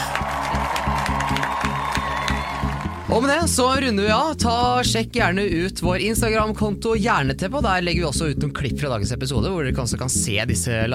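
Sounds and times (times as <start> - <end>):
studio applause: 0.0 - 3.1
studio audience cheering: 0.0 - 3.5
speech: 3.1 - 10.9.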